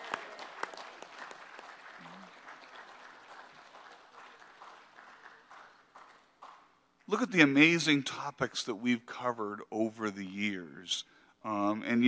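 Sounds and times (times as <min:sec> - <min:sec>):
audience applause: 0:00.0 - 0:06.7
speech: 0:07.1 - 0:12.0.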